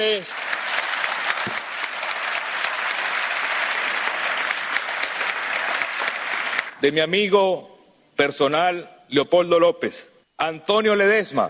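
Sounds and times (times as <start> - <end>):
speech: 0.0 - 0.4, 6.8 - 11.4
audience applause at a political event honouring invited guests: 0.0 - 6.8.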